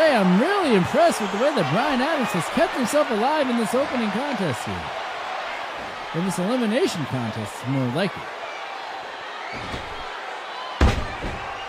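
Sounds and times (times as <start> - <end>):
speech: 0.2 - 5.0, 6.1 - 8.4, 9.5 - 10.0
wrestler slammed into the ring by a suplex: 9.6 - 10.1, 10.8 - 11.6.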